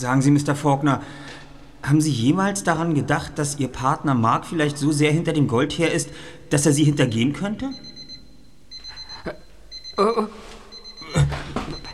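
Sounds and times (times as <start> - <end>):
speech: 0.0 - 7.9, 10.0 - 10.4
alarm clock ringing: 7.0 - 10.0, 10.8 - 11.0.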